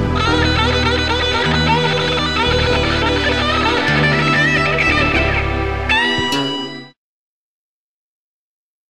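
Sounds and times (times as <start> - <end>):
electric guitar: 0.0 - 7.0.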